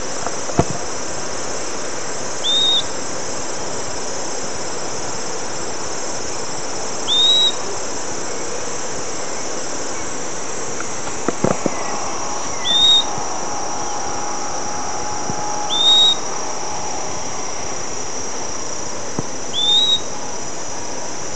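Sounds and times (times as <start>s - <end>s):
high insect buzz: 0.0s - 21.3s
bird rising whistles: 2.4s - 2.9s, 7.0s - 7.6s, 11.6s - 18.6s, 19.4s - 20.4s.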